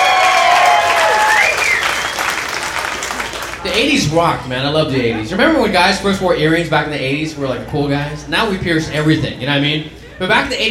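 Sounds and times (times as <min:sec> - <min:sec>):
audience applause: 0:00.0 - 0:03.8
speech: 0:03.8 - 0:10.6.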